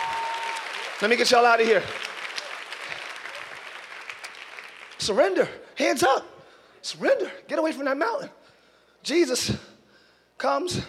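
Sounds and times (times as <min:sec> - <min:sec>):
crowd clapping: 0:00.0 - 0:05.2
speech: 0:01.0 - 0:02.1, 0:05.0 - 0:08.4, 0:09.0 - 0:09.7, 0:10.4 - 0:10.8.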